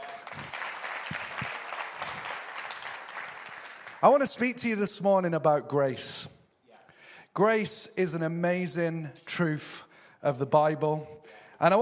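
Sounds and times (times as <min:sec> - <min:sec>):
audience applause: 0:00.0 - 0:04.0
speech: 0:04.0 - 0:06.4, 0:07.4 - 0:11.8.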